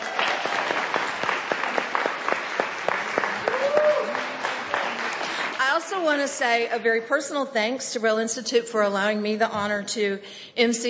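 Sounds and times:
audience applause: 0.0 - 5.8
speech: 6.0 - 10.8.

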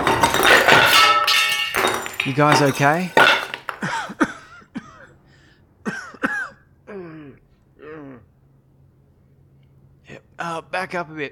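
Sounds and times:
part of wall or roof collapsing: 0.0 - 4.1
speech: 2.3 - 3.2, 10.4 - 11.2.

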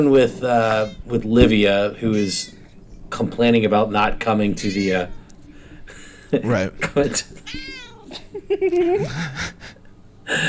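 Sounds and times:
speech: 0.0 - 5.2, 6.3 - 7.7, 8.5 - 9.7, 10.3 - 10.4
cat meowing: 0.4 - 2.6, 4.4 - 8.2
laughter: 4.6 - 10.4.

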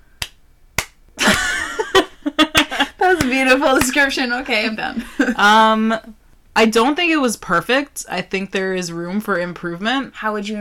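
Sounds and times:
slow hand claps: 0.2 - 1.7, 2.5 - 4.0
laughter: 1.2 - 5.6
speech: 3.2 - 10.5.

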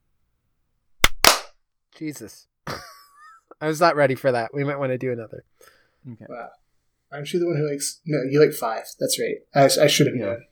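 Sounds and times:
hand clap: 1.0 - 1.6
speech: 2.0 - 2.9, 3.6 - 10.5.

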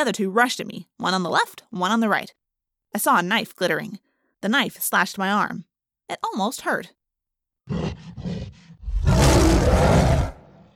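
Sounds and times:
speech: 0.0 - 7.0
gorilla roar: 7.7 - 10.7.

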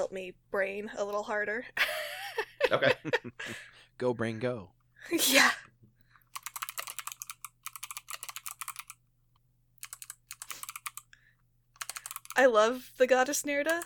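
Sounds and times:
speech: 0.0 - 2.1, 2.7 - 5.7, 12.4 - 13.8
laughter: 1.8 - 3.7
typing on a computer keyboard: 6.3 - 9.0, 9.8 - 11.1, 11.8 - 12.5, 13.5 - 13.8.

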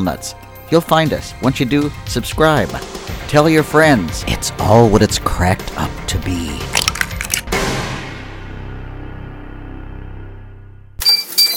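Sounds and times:
speech: 0.0 - 6.7
OptiGrill electric contact grill beep: 11.0 - 11.5.

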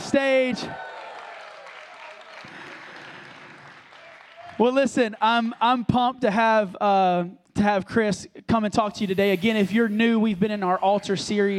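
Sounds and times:
speech: 0.1 - 0.9, 4.6 - 11.5
whoops and shouted cheers: 0.5 - 2.8, 3.9 - 4.7
crowd applause: 0.6 - 5.6.

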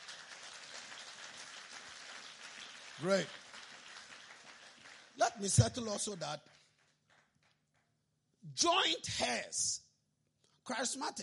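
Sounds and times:
audience clapping: 0.0 - 8.0
speech: 3.0 - 3.4, 5.4 - 6.6, 8.4 - 9.8, 10.6 - 11.2.

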